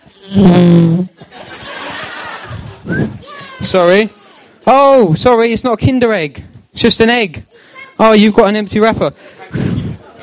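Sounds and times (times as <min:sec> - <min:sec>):
fart whistle toy being blown: 0:00.2 - 0:01.1
speech: 0:00.2 - 0:01.1, 0:03.7 - 0:09.8
laughter: 0:01.2 - 0:03.0, 0:09.2 - 0:10.2.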